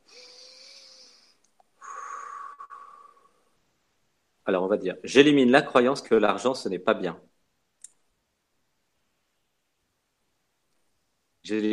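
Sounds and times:
slow drawn-out deep breath: 0:00.0 - 0:03.6
speech: 0:04.5 - 0:07.3, 0:11.5 - 0:11.7.

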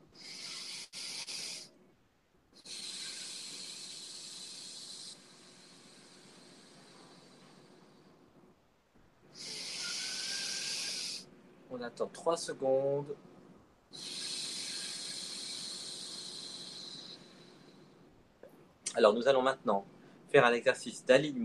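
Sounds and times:
slow airy breathing: 0:00.0 - 0:01.8, 0:02.6 - 0:11.4, 0:12.9 - 0:18.3, 0:19.9 - 0:20.3
speech: 0:11.8 - 0:13.3, 0:19.0 - 0:21.4.

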